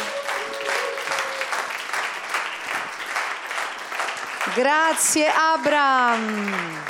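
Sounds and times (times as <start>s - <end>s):
audience applause: 0.0s - 6.8s
speech: 4.6s - 6.8s.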